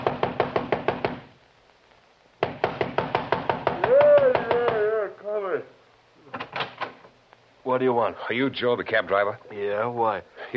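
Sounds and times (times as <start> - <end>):
fist pounding on a door: 0.0 - 1.2, 2.4 - 4.8
speech: 7.7 - 10.5.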